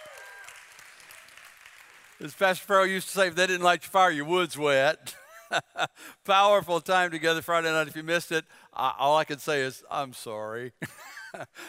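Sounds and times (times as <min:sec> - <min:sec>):
crowd clapping: 0:00.0 - 0:02.9
speech: 0:02.2 - 0:11.6.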